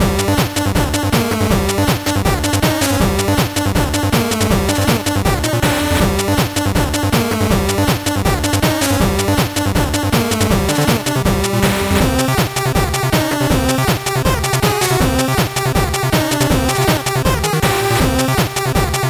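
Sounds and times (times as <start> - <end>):
fast 8-bit background music: 0.0 - 19.0.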